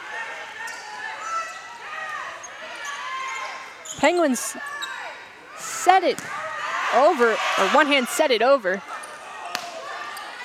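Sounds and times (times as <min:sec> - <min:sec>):
speech: 0:04.0 - 0:04.8, 0:05.8 - 0:08.9
volleyball bounced on the floor before a serve: 0:06.1 - 0:06.4.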